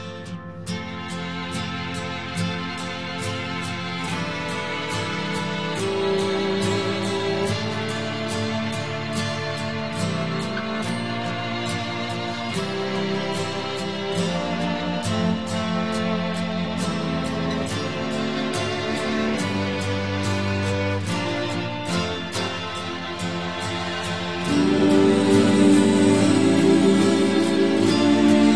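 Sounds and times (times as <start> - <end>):
brass music: 0.9 - 28.5.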